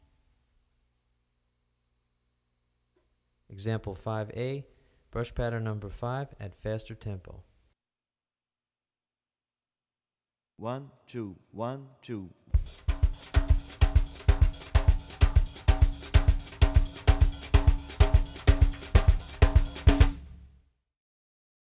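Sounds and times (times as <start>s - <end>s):
samba drumming with brushes: 12.6s - 20.6s.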